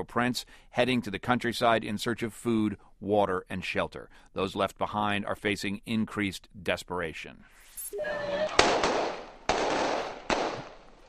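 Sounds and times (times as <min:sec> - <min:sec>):
speech: 0:00.0 - 0:08.9
crowd commotion: 0:07.9 - 0:09.0
loud sharp bangs like gunshots: 0:08.5 - 0:11.0.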